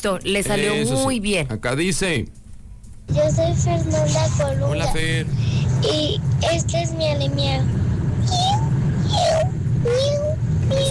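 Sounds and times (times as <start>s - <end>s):
speech: 0.0s - 2.4s, 3.1s - 8.5s, 9.1s - 10.8s
steady low hum: 0.0s - 10.8s
child imitating a cat's meow: 8.3s - 10.8s.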